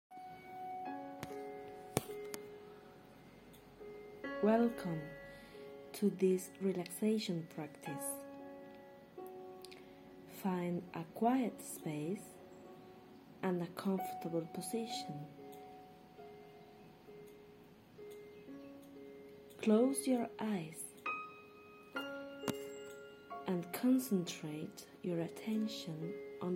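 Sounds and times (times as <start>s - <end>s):
relaxing music: 0.1s - 26.5s.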